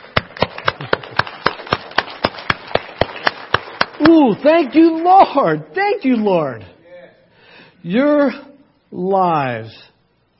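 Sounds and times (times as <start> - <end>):
hand clapping: 0.0 - 4.7
speech: 4.0 - 6.8, 7.8 - 9.9.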